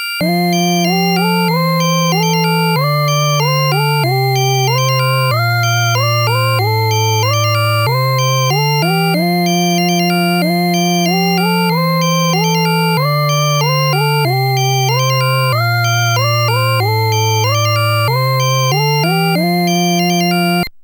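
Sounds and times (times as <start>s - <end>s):
quartal harmony chords: 0.2s - 20.6s.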